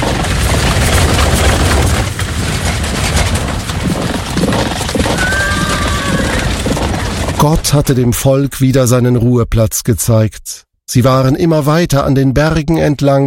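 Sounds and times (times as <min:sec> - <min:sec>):
war chariots rattling out with horses: 0:00.0 - 0:08.4
speech: 0:07.4 - 0:13.2.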